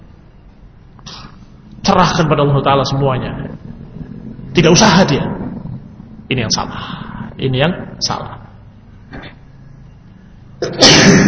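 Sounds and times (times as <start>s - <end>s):
sneeze: 1.1s - 1.4s, 10.6s - 11.2s
speech: 1.9s - 3.5s, 4.6s - 5.4s, 6.3s - 8.4s, 10.6s - 11.2s.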